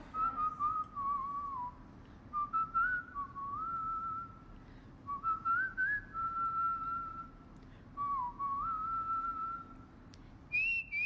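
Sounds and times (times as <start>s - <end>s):
woman whistling a tune: 0.0s - 7.4s, 8.0s - 9.9s, 10.5s - 11.0s
faint hiss: 0.0s - 11.0s.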